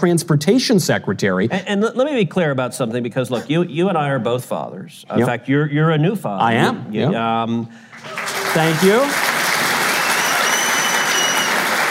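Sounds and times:
speech: 0.0s - 9.3s
audience applause: 7.9s - 11.8s.

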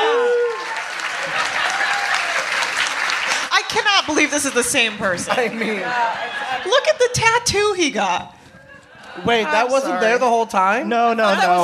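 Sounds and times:
high-pitched whoop: 0.0s - 0.9s
audience applause: 0.0s - 5.0s
laughter: 0.0s - 7.5s, 8.4s - 10.2s
speech: 4.1s - 8.4s, 9.2s - 11.6s.

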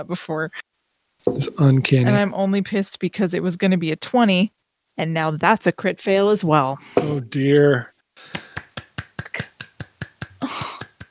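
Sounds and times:
speech: 0.0s - 8.4s
laughter: 7.0s - 11.0s
hands clapping: 8.2s - 11.0s.

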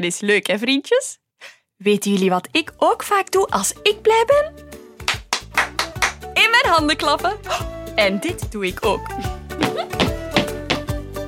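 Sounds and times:
speech: 0.0s - 4.8s, 6.6s - 9.3s
feet stomping on the floor: 9.5s - 11.2s.

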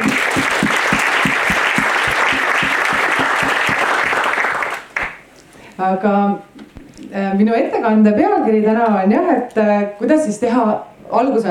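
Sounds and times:
audience applause: 0.0s - 5.2s
speech: 5.8s - 11.4s.

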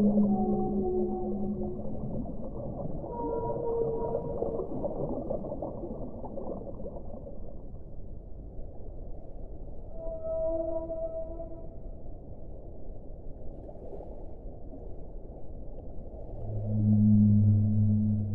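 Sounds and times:
whales singing: 0.0s - 5.0s, 16.4s - 18.3s
low constant rumble: 0.0s - 13.6s, 14.3s - 18.3s.

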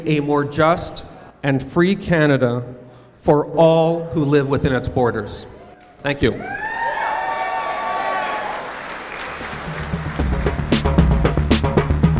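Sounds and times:
speech: 0.0s - 6.7s
audience cheering: 6.2s - 11.6s
audience clapping: 6.6s - 12.0s.

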